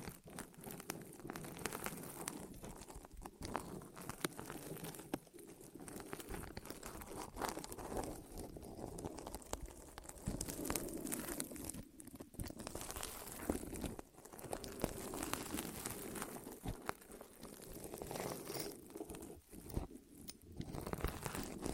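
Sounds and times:
ASMR rolling rustling and crinkling on the ears: 0:00.0 - 0:21.7.

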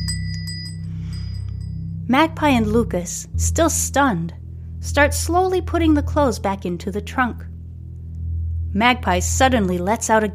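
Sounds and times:
small bell on a cat's collar: 0:00.0 - 0:01.9
speech: 0:02.1 - 0:07.5, 0:08.7 - 0:10.3.

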